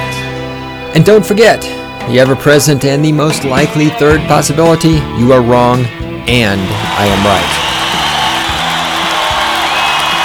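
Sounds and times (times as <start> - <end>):
speech: 1.0 - 7.8
crowd cheering wildly: 6.5 - 10.2
whistle-like tones: 7.5 - 10.2.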